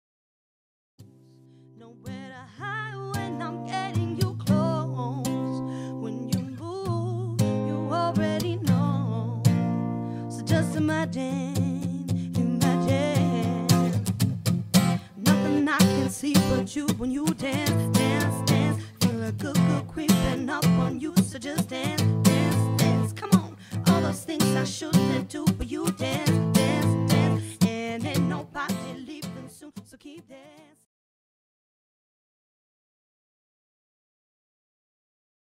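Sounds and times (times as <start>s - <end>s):
acoustic duo playing a cover: 3.0s - 29.7s.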